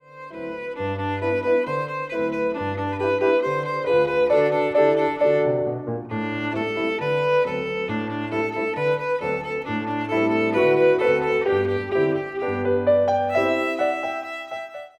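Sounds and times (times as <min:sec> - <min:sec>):
violin: 0:00.0 - 0:14.9.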